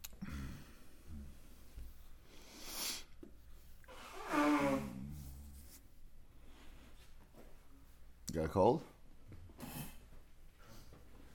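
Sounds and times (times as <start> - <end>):
nose blowing: 2.4 - 3.1, 3.9 - 5.8
speech: 8.4 - 8.9.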